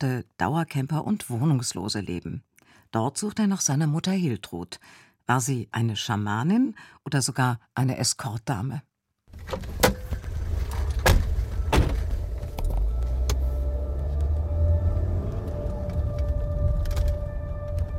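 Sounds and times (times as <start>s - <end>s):
speech: 0.0s - 10.0s
car passing on the federal highway southwest of Bernal toward Jadbergen: 10.1s - 17.9s.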